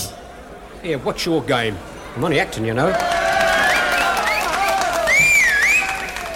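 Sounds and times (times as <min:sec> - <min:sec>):
speech: 0:00.8 - 0:03.1
audience applause: 0:02.9 - 0:06.3.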